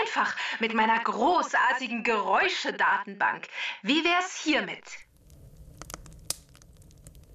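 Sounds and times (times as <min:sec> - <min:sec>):
speech: 0:00.2 - 0:05.0
crackling campfire sound effect: 0:05.0 - 0:07.3.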